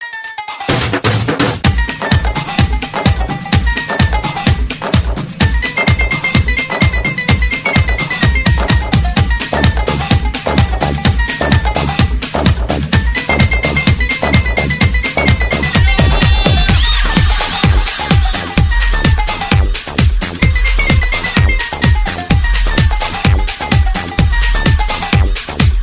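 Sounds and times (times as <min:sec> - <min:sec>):
bhangra music mix: 0:00.0 - 0:25.8.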